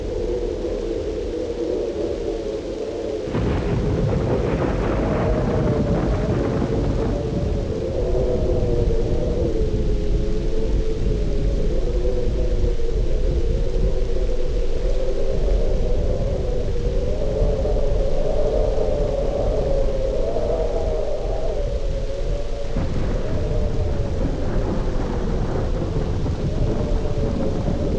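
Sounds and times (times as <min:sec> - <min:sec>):
heavy wind: 0:00.0 - 0:27.9
thunderstorm: 0:00.0 - 0:27.9.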